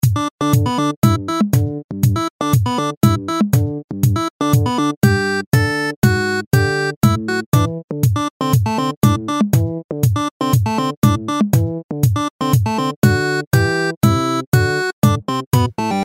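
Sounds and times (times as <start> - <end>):
ringtone: 0.0 - 16.0.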